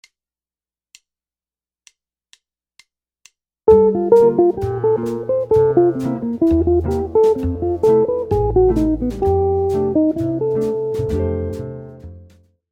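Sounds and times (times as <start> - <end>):
jazz guitar lick: 3.7 - 12.3.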